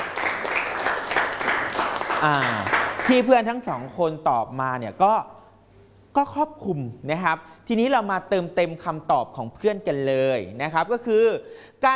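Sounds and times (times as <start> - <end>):
applause for a classmate: 0.0 - 3.4
speech: 2.2 - 5.4, 6.1 - 11.9.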